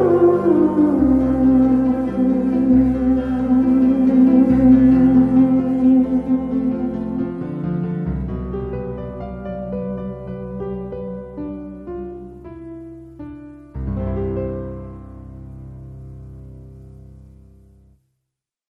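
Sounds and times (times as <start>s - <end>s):
theremin: 0.0s - 8.0s.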